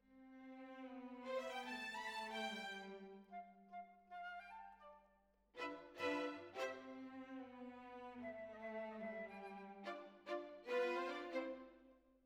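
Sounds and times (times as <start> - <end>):
violins: 0.1 - 3.4, 5.6 - 11.8.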